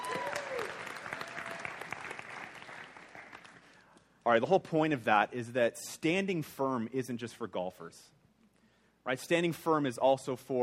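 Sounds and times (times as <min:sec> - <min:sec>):
audience golf clap: 0:00.0 - 0:04.0
speech: 0:04.3 - 0:08.2, 0:09.0 - 0:10.6.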